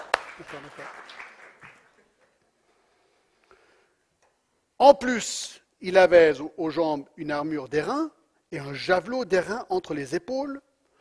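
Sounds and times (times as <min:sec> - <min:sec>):
audience applause: 0:00.0 - 0:02.2
speech: 0:00.4 - 0:01.3, 0:04.8 - 0:10.7.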